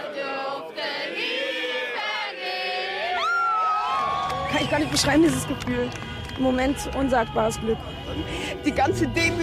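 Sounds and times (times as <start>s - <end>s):
crowd cheering: 0.2s - 9.4s
crowd applauding: 3.2s - 9.4s
speech: 4.5s - 9.4s.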